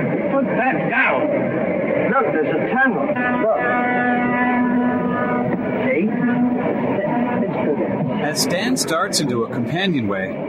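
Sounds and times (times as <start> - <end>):
speech: 0.4 - 3.6, 8.3 - 10.4
boat horn being pressed and blaring: 3.1 - 7.5.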